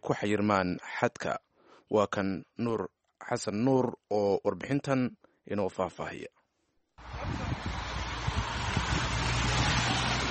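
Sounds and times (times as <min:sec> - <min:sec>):
speech: 0:00.0 - 0:06.4
cars driving fast on a winding mountain road near Ventimiglia in rain: 0:07.0 - 0:10.2.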